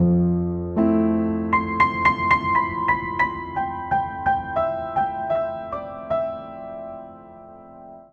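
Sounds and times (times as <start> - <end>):
wistful upright piano phrase in C major at 118 bpm: 0.0 - 8.1.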